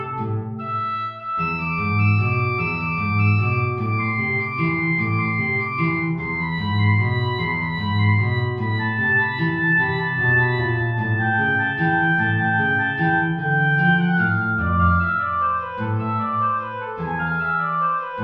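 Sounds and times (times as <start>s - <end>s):
play-along backing music: 0.2s - 18.1s.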